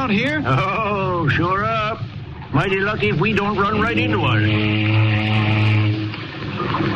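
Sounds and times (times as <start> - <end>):
speech: 0.1 - 5.7, 6.8 - 6.9
ship's foghorn blast: 3.0 - 6.5.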